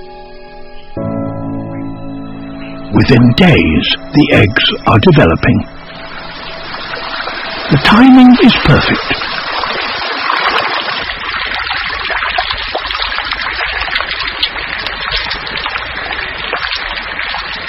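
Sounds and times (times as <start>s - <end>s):
speech: 2.9s - 5.8s, 7.7s - 9.3s
running water trickle: 3.0s - 17.6s
steady rain: 3.9s - 17.6s.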